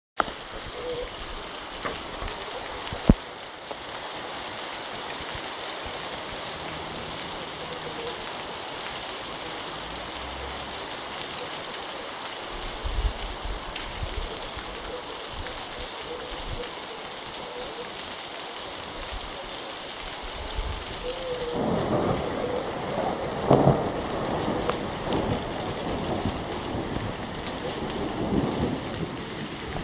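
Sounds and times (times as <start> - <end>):
rain: 0.2 - 29.8
thunder: 21.5 - 29.8.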